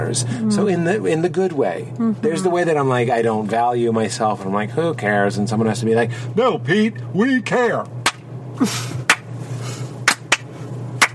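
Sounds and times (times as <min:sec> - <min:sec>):
speech: 0:00.0 - 0:08.0, 0:08.6 - 0:09.0
rhythmic hand clapping: 0:08.0 - 0:08.2, 0:09.0 - 0:09.3, 0:10.0 - 0:11.1.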